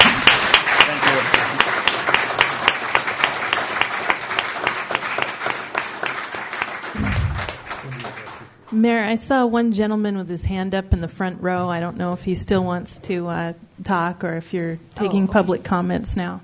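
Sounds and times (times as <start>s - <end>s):
audience applause: 0.0s - 8.7s
speech: 8.8s - 16.4s.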